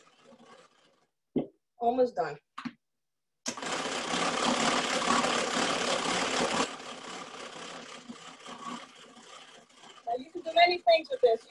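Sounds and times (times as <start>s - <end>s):
geared hand-crank mixer whipping mousse: 0.0s - 1.1s, 3.5s - 11.4s
speech: 1.8s - 2.5s, 10.7s - 11.4s.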